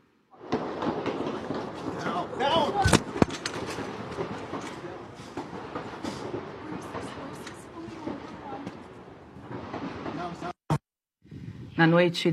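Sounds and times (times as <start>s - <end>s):
gunshots fired near the White House in Washington: 0.4s - 10.6s.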